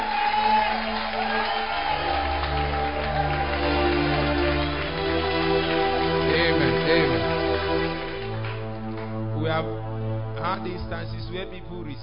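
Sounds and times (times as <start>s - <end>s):
whoops and shouts: 0.0s - 4.0s
audience clapping and cheering: 0.0s - 9.4s
low hum of music: 0.0s - 12.0s
speech: 10.5s - 12.0s.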